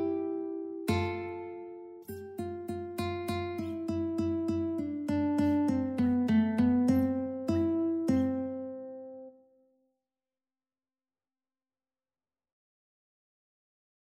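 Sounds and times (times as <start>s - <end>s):
guitar duet: 0.0s - 9.3s.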